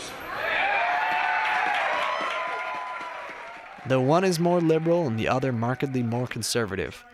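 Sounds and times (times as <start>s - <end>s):
supporters cheering and shouting at a political rally: 0.2s - 7.1s
scattered claps: 1.2s - 6.4s
speech: 3.9s - 7.1s.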